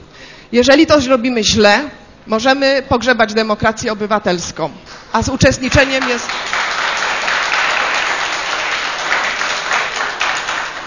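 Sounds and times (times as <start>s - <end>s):
speech: 0.5s - 6.6s
audience applause: 5.8s - 10.8s.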